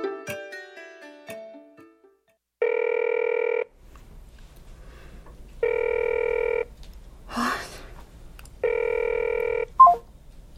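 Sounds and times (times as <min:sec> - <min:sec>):
telephone ringing unanswered: 0:02.6 - 0:03.7, 0:05.6 - 0:06.7, 0:08.6 - 0:10.0.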